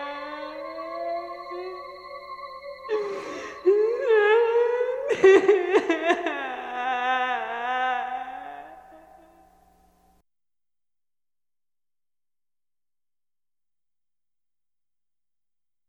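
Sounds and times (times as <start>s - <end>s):
scary woman ghost voice: 0.0s - 9.6s.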